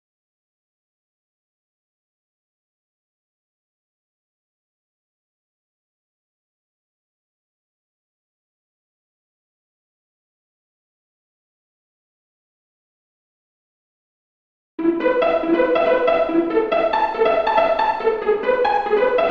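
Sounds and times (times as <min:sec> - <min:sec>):
solo pizzicato strings: 0:14.8 - 0:19.2.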